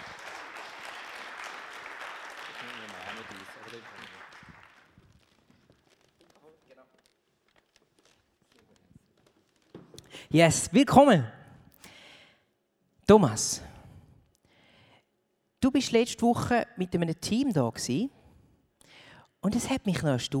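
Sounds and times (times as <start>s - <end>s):
audience applause: 0.0s - 5.4s
speech: 3.3s - 4.3s, 10.3s - 11.4s, 13.1s - 13.7s, 15.8s - 18.2s, 19.4s - 20.3s.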